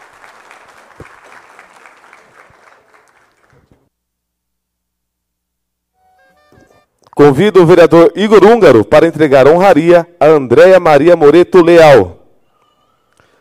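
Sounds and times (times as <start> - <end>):
audience applause: 0.0 - 3.9
speech: 7.2 - 12.2.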